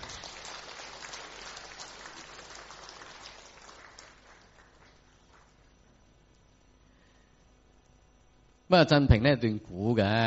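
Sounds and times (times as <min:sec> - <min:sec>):
audience applause: 0:00.0 - 0:05.5
speech: 0:08.7 - 0:10.2.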